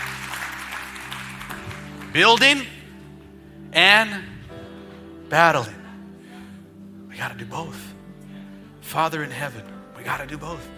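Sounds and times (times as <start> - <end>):
scattered audience claps: 0.0 - 3.0
speech: 2.1 - 2.8, 3.7 - 4.3, 5.3 - 5.8, 7.2 - 7.9, 8.9 - 10.7.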